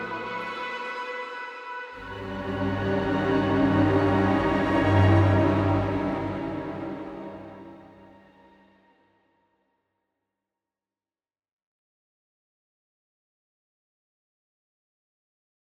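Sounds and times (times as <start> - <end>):
song: 0.0 - 1.1, 2.0 - 8.2.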